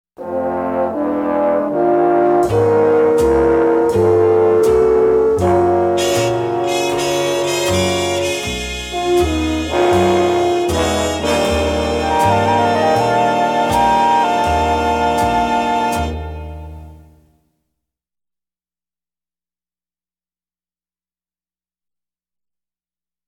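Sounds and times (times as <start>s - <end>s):
horns: 0.2s - 17.3s.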